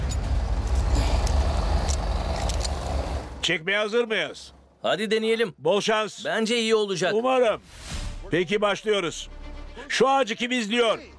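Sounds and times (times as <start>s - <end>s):
heavy truck engine revving at full throttle: 0.0s - 3.5s
speech: 3.5s - 11.1s.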